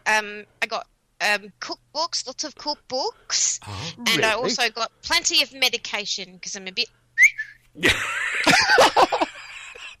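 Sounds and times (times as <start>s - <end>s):
speech: 0.1s - 9.2s
person whistling: 7.2s - 7.6s
laughter: 7.8s - 9.9s.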